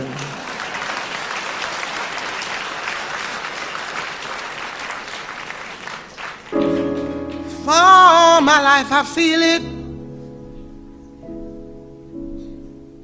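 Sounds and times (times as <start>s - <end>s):
audience clapping: 0.0s - 8.4s
speech: 8.4s - 9.7s.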